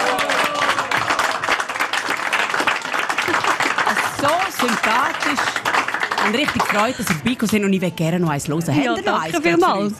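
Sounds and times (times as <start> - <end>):
audience applause: 0.0 - 7.4
speech: 4.2 - 9.9.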